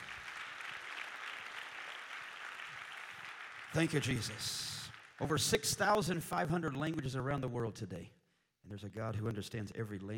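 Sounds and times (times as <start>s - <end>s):
audience clapping hands: 0.0s - 7.1s
speech: 3.7s - 10.1s.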